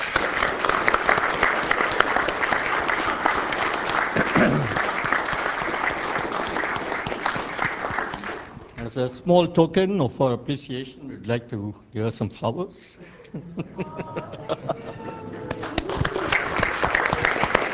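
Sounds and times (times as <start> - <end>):
conference audience round of applause: 0.0 - 8.7, 14.1 - 17.7
speech: 9.0 - 14.7
laughter: 13.0 - 17.7.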